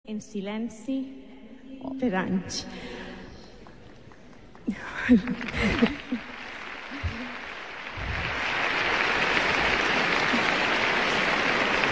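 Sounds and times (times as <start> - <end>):
speech: 0.1 - 1.2, 1.8 - 3.0, 4.7 - 6.3
audience applause: 3.8 - 11.8.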